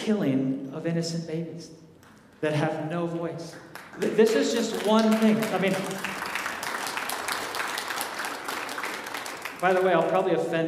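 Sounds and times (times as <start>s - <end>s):
speech: 0.1s - 6.2s, 9.6s - 10.6s
audience clapping: 3.5s - 10.6s.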